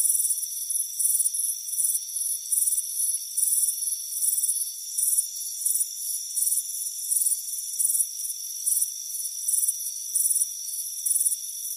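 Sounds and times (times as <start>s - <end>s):
cricket chirps: 0.0s - 11.7s.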